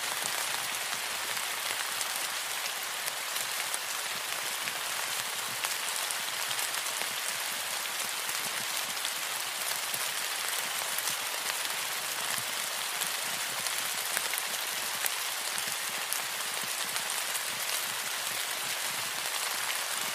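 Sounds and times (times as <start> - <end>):
heavy tropical rain on surfaces: 0.0 - 20.1.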